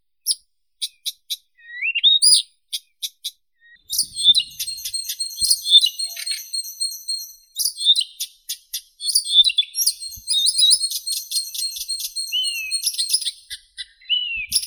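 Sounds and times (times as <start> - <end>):
Blyth's reed warbler Acrocephalus dumetorum singing: 3.6 - 14.6.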